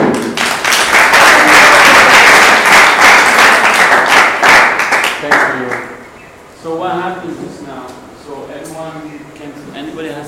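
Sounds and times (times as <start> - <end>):
audience applause: 0.0 - 5.8.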